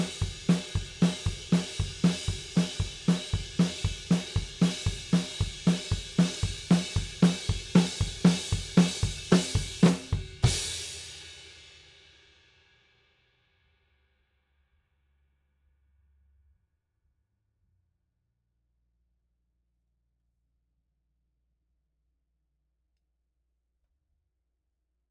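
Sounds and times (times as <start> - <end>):
drums: 0.0 - 13.1.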